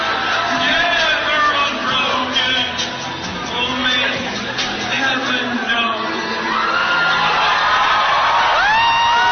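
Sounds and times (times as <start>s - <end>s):
large crowd howling, whooping and jeering: 0.0s - 9.3s.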